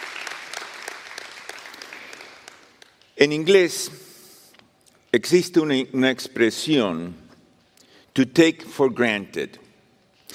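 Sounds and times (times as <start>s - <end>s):
audience applause: 0.0s - 2.8s
speech: 3.2s - 4.1s, 5.2s - 7.2s, 8.2s - 9.6s.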